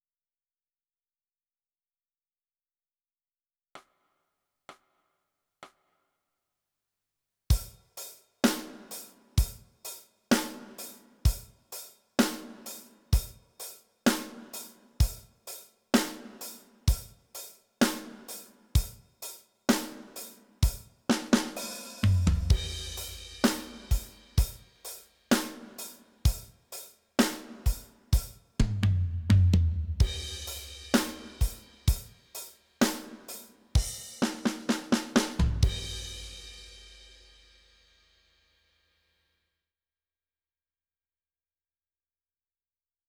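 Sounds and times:
drums: 7.5 - 38.3.

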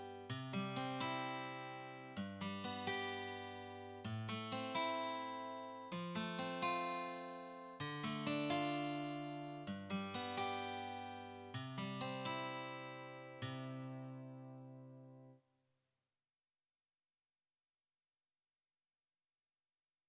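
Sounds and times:
guitar: 0.0 - 15.4.

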